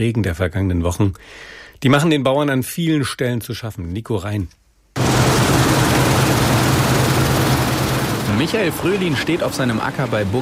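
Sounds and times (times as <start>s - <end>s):
speech: 0.0s - 5.3s, 8.4s - 10.4s
combine harvester: 5.0s - 10.4s.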